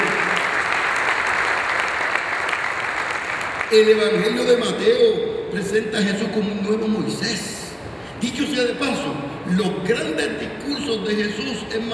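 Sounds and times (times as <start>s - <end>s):
loud applause from audience: 0.0s - 4.3s
speech: 3.7s - 7.6s, 8.2s - 11.9s.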